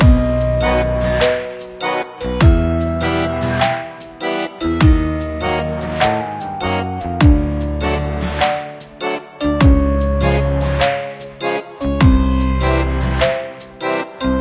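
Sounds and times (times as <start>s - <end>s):
musical stinger: 0.0s - 13.5s.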